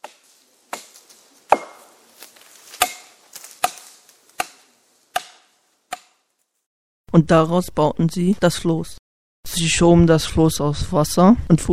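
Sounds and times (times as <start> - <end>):
axe chopping down trees: 0.0 - 6.3
speech: 7.2 - 11.7.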